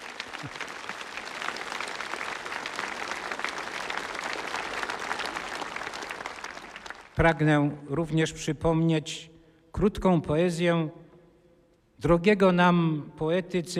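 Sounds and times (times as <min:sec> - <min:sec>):
audience applause: 0:00.0 - 0:07.2
speech: 0:00.4 - 0:00.6, 0:07.2 - 0:11.0, 0:12.0 - 0:13.7.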